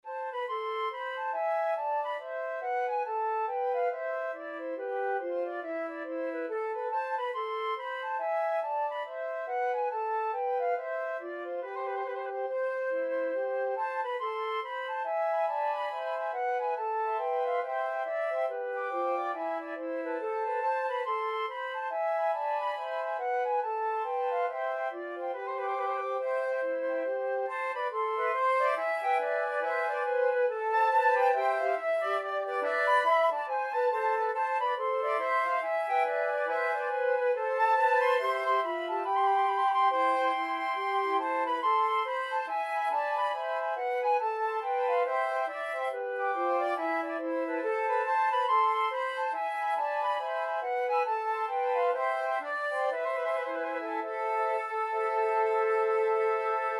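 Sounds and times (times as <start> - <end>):
flute quartet: 0.0 - 56.7.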